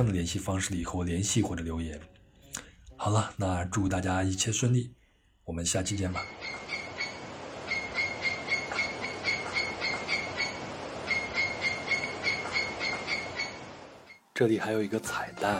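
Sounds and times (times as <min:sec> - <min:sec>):
speech: 0:00.0 - 0:02.2, 0:03.0 - 0:06.6, 0:14.4 - 0:15.5
river water flowing at a camp: 0:06.2 - 0:14.2
insects calling at a camp: 0:06.2 - 0:14.4.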